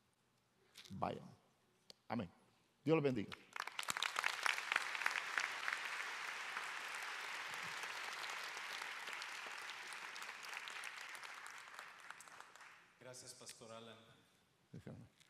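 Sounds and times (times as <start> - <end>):
speech: 0.9 - 1.4, 2.1 - 3.5, 13.7 - 15.2
crowd applauding: 3.3 - 12.9.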